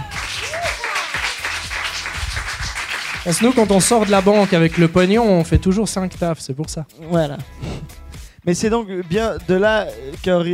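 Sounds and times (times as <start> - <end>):
crowd applauding: 0.0 - 5.4
speech: 3.2 - 7.7, 8.4 - 10.5.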